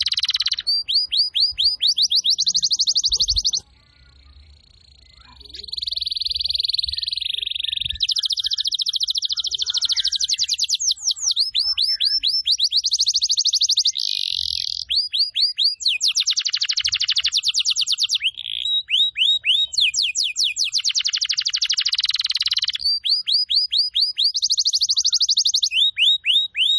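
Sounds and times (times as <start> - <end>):
canary song used as a lure to attract birds: 0.0 - 26.7.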